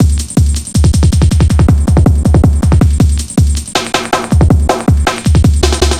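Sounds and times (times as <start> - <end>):
drum and bass drum loop: 0.0 - 5.9.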